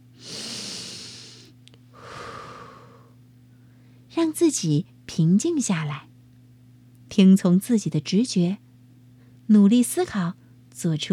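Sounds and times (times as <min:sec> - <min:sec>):
slow deep breath as a calming exercise: 0:00.2 - 0:04.0
speech: 0:04.2 - 0:06.1, 0:07.1 - 0:08.6, 0:09.5 - 0:11.1.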